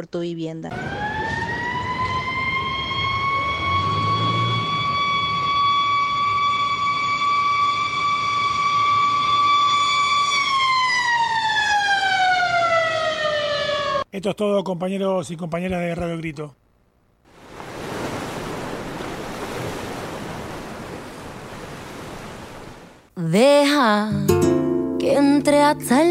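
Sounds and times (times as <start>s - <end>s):
speech: 0.0s - 1.4s, 14.2s - 16.6s, 23.2s - 26.1s
fire truck siren: 0.7s - 14.1s.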